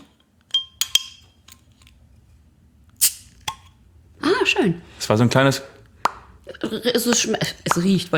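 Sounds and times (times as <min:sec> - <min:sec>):
bottle cap hissing pop: 0:03.0 - 0:03.6
beer bottle being opened: 0:03.0 - 0:03.7
speech: 0:04.6 - 0:05.8, 0:06.6 - 0:08.1.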